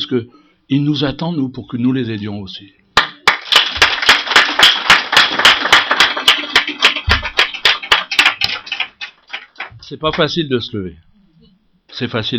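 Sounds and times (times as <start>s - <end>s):
speech: 0.0s - 2.8s, 9.9s - 11.1s, 11.9s - 12.3s
audience applauding: 3.0s - 9.8s.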